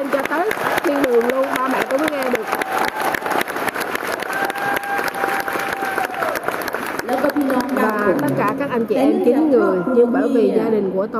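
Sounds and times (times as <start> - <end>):
audience applause: 0.0 - 8.8
speech: 8.8 - 11.1.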